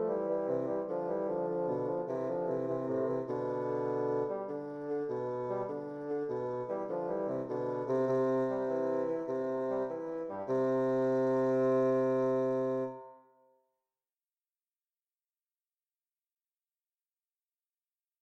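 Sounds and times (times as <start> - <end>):
bassoon duet: 0.0 - 13.2.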